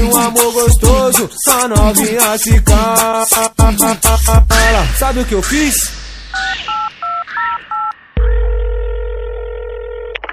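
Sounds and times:
speech: 0:00.3 - 0:07.6
telephone keypad tones dialing a taxi: 0:06.4 - 0:07.9
long steady telephone tone: 0:06.4 - 0:10.3
telephone line click: 0:09.5 - 0:10.3.

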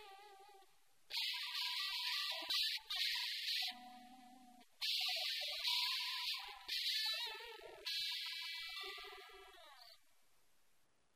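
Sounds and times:
overdrive distortion: 0:01.1 - 0:09.9.

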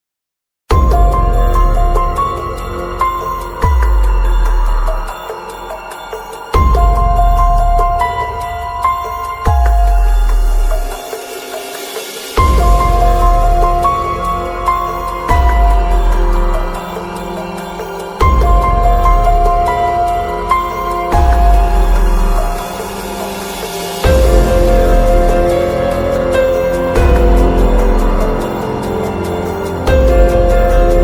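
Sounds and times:
scary Halloween music: 0:00.7 - 0:31.0.

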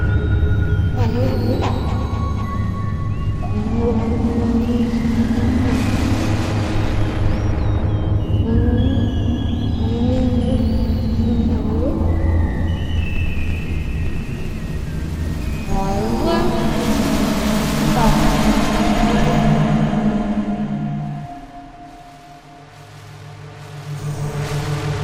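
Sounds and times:
very scary dark sci-fi alien horror sound effects: 0:00.0 - 0:25.0.

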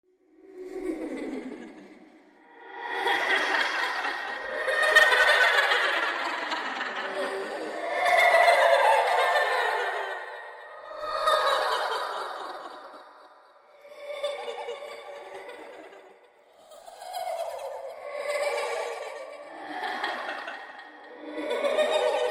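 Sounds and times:
creepy ghost children laughing at night: 0:01.0 - 0:22.3.

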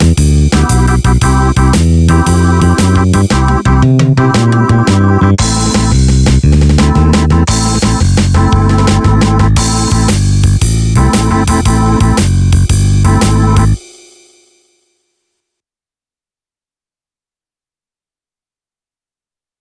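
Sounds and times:
instrumental blues: 0:00.0 - 0:13.8.

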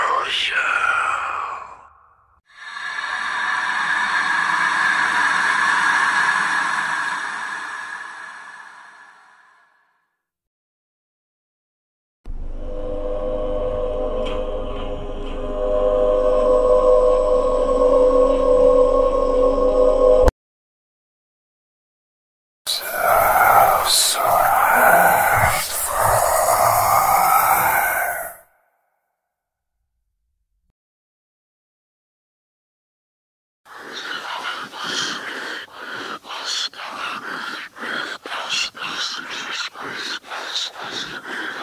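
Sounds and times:
scary horror whispering: 0:00.0 - 0:09.9, 0:12.3 - 0:20.3, 0:22.7 - 0:28.5, 0:33.7 - 0:41.6.

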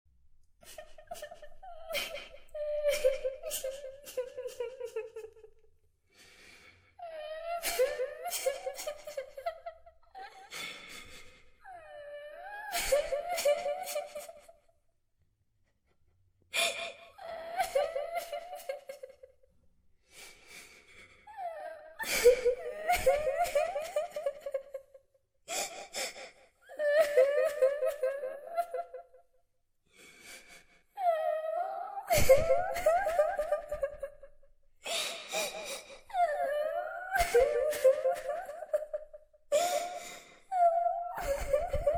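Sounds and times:
creepy little girl crying and weeping horror sound effect: 0:00.7 - 0:05.3, 0:07.0 - 0:10.8, 0:11.7 - 0:14.4, 0:16.6 - 0:19.1, 0:21.3 - 0:24.9, 0:26.7 - 0:29.0, 0:31.0 - 0:34.3, 0:34.9 - 0:41.9.

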